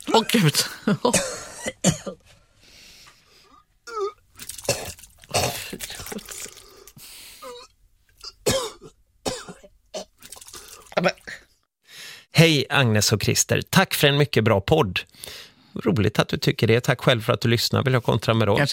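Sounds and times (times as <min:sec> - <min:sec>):
person vomiting, splashing and retching: 0:00.0 - 0:02.2, 0:03.6 - 0:11.6
speech: 0:00.2 - 0:02.0, 0:12.6 - 0:18.7.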